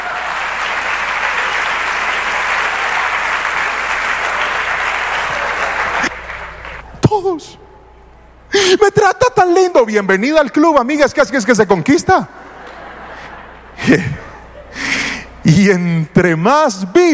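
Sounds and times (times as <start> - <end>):
audience applause: 0.0 - 6.8
speech: 7.4 - 7.6, 8.9 - 12.5, 13.8 - 14.8, 15.4 - 17.1
laughter: 12.2 - 15.4.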